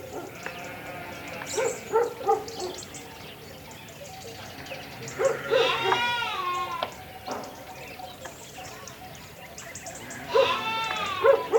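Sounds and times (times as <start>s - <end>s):
sheep bleating: 0.3s - 1.9s, 4.9s - 6.9s, 10.0s - 11.5s.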